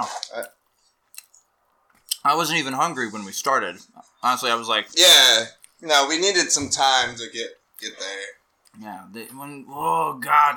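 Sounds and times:
speech: 0:00.0 - 0:00.6, 0:02.2 - 0:10.5
person chewing a sandwich: 0:00.3 - 0:02.2
wet mouth smacking: 0:00.4 - 0:01.4.

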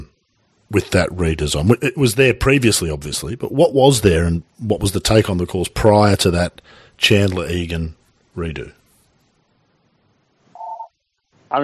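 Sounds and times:
speech: 0:00.7 - 0:08.8
telephone ringing: 0:10.6 - 0:11.0.

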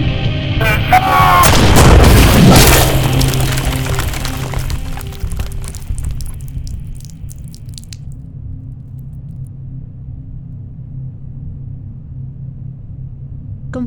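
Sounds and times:
C4 explosive detonating: 0:00.6 - 0:08.0.

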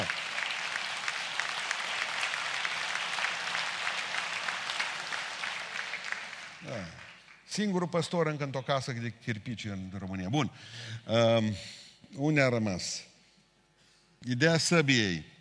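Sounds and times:
audience applause: 0:00.0 - 0:07.4
speech: 0:06.6 - 0:13.1, 0:14.2 - 0:15.3.

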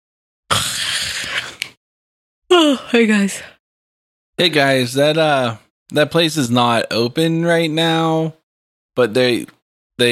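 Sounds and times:
big yawn: 0:00.5 - 0:01.8
speech: 0:02.6 - 0:03.6, 0:04.4 - 0:08.4, 0:09.0 - 0:10.1.

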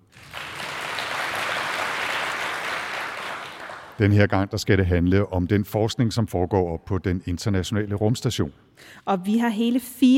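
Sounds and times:
live audience applauding and cheering: 0:00.0 - 0:04.0
speech: 0:04.0 - 0:10.1.

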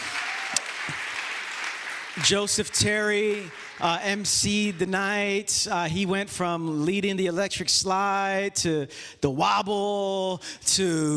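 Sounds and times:
audience applause: 0:00.0 - 0:04.9
speech: 0:02.2 - 0:11.1.

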